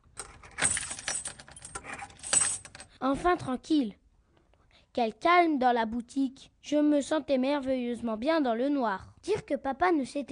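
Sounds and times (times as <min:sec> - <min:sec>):
keys jingling and rattling: 0:00.0 - 0:02.9
speech: 0:03.0 - 0:04.0, 0:05.0 - 0:10.3.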